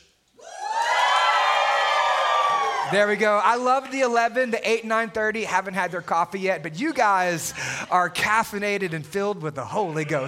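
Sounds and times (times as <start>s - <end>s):
audience cheering and whooping: 0.4s - 3.5s
speech: 2.9s - 10.2s.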